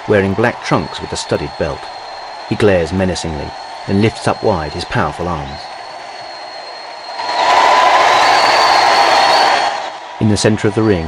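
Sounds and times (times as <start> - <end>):
faint whistle-like tones: 0.0 - 11.0
large crowd cheering and applauding: 0.0 - 11.0
speech: 0.1 - 5.7, 10.2 - 11.0.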